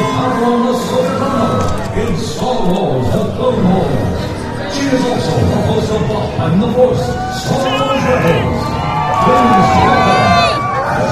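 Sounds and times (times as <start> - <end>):
large crowd roaring and cheering: 0.0 - 11.1
speech: 6.4 - 8.5.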